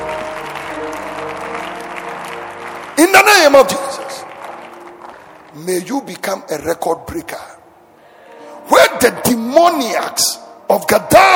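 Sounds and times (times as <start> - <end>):
audience clapping: 0.0 - 6.2
speech: 3.0 - 4.0, 5.6 - 7.5, 9.0 - 11.3.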